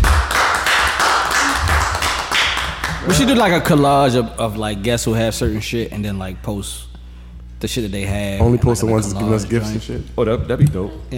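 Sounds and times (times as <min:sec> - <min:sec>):
people clapping: 0:00.0 - 0:04.2
speech: 0:03.1 - 0:06.9, 0:07.6 - 0:11.1.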